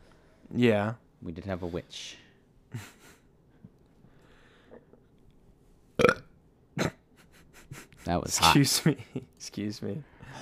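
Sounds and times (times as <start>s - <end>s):
speech: 0.5s - 3.0s, 8.1s - 10.4s
person burping: 6.0s - 7.0s.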